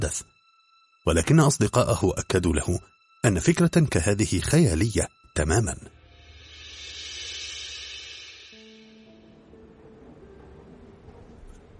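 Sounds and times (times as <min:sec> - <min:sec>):
speech: 0:00.0 - 0:00.3, 0:01.0 - 0:06.0
subway train carriage rumbling: 0:08.6 - 0:11.7.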